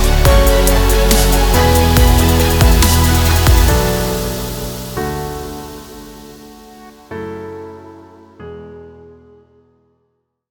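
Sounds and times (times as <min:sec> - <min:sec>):
abstract cinematic music: 0:00.0 - 0:07.6.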